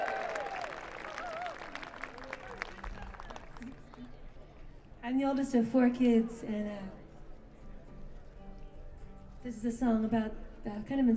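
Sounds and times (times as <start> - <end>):
audience cheering and clapping: 0.0 - 3.8
speech: 5.1 - 7.0, 9.4 - 11.1.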